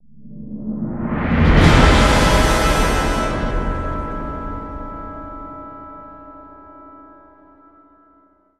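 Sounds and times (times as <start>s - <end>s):
stinger drum roll: 1.3s - 6.1s
horns playing: 1.4s - 6.2s.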